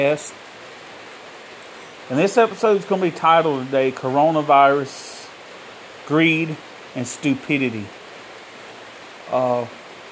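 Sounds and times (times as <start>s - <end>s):
speech: 0.0s - 0.5s, 2.1s - 5.1s, 6.1s - 8.0s, 9.3s - 9.8s
rain on a tin roof: 0.0s - 10.1s.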